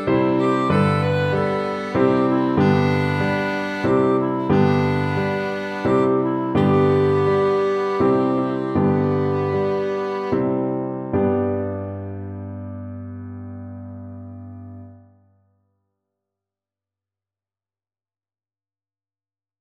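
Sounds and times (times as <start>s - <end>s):
minuet: 0.0s - 15.0s.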